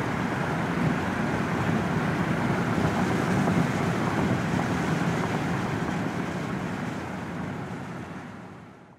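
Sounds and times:
car interior while driving with window open: 0.0s - 8.9s.

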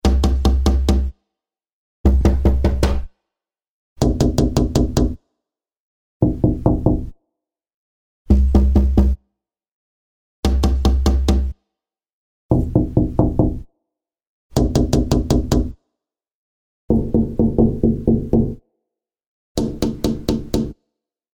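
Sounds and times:
knocks and rapping on windows: 0.0s - 1.1s, 2.1s - 3.1s, 4.0s - 5.2s, 6.2s - 7.1s, 10.5s - 11.5s, 12.5s - 13.6s, 14.6s - 15.7s, 16.9s - 18.5s, 19.6s - 20.8s.

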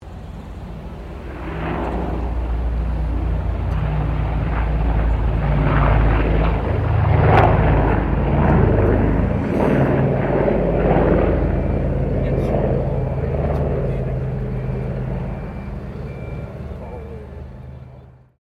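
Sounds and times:
Lockheed L-1049 Super Consellation aircraft passing: 0.0s - 18.4s.

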